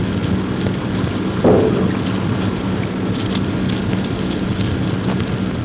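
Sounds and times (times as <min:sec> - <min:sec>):
sped-up seismic ground noise: 0:00.2 - 0:05.4
thump of a small volcanic explosion: 0:01.4 - 0:03.8.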